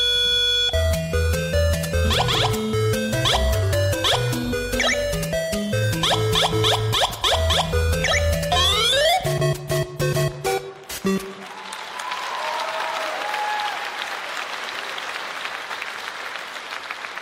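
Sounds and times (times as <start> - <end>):
brief burst of punchy music: 0.8 - 11.4
weak audience applause: 11.3 - 17.2.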